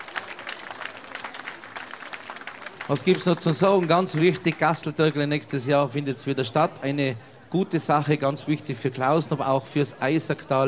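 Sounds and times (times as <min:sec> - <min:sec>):
audience applause at the Türkele festival in Klausen: 0:00.0 - 0:05.2
speech: 0:02.9 - 0:10.6.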